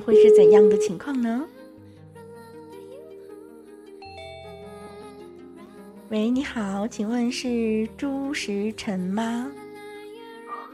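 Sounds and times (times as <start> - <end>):
phone call ringing tone while dialing: 0.0 - 1.1
speech: 0.0 - 1.6, 6.1 - 9.6.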